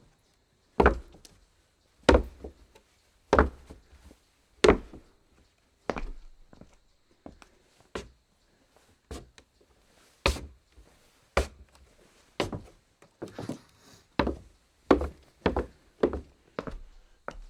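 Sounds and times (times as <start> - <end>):
footsteps on wood: 0.8 - 1.2, 2.1 - 2.6, 3.3 - 3.8, 4.6 - 5.1, 5.9 - 7.4, 10.3 - 11.7, 12.4 - 17.4.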